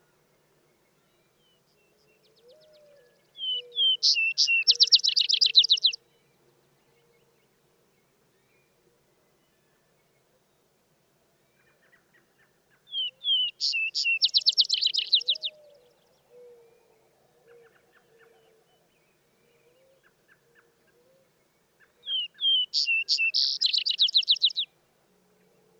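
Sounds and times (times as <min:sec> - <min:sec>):
vesper sparrow song with trill: 0:03.4 - 0:06.0, 0:12.9 - 0:15.7, 0:21.9 - 0:24.7.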